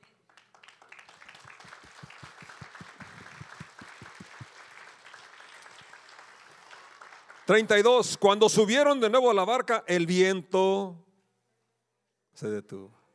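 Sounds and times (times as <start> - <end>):
audience applause: 0.0 - 7.9
speech: 7.5 - 11.0, 12.4 - 13.0.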